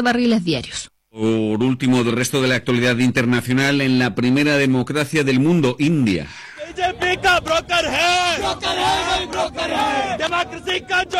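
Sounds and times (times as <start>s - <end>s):
speech: 0.0s - 11.1s
large crowd of protesters chanting and shouting: 6.6s - 11.1s.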